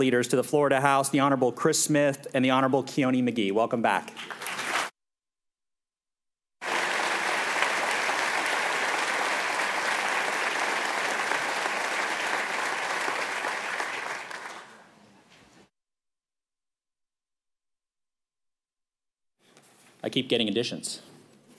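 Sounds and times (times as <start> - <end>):
speech: 0.0 - 4.6, 20.1 - 21.2
audience applause in legislative chamber: 4.2 - 4.9, 6.6 - 15.0.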